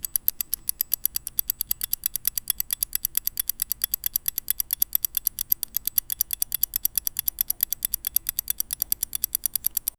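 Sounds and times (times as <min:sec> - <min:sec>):
mechanical clockwork movement: 0:00.0 - 0:09.9.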